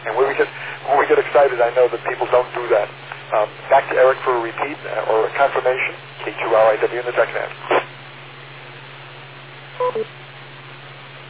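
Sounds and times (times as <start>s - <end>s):
speech: 1.4s - 7.8s, 9.8s - 10.2s
telephone net system electronic beep tones: 9.8s - 10.1s.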